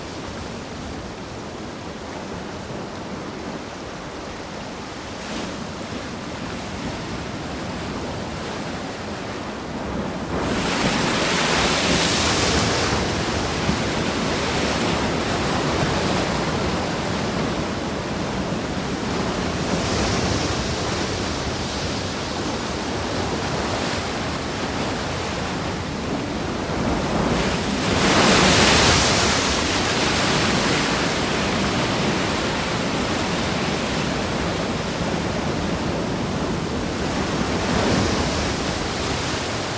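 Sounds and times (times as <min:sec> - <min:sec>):
sea waves crashing on rocks: 0:00.0 - 0:39.7.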